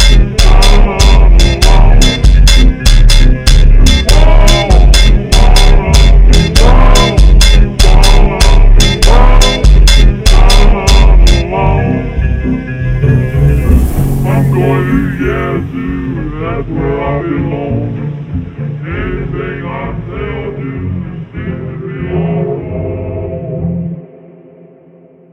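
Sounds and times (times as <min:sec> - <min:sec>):
slowed funk music: 0:00.0 - 0:19.0.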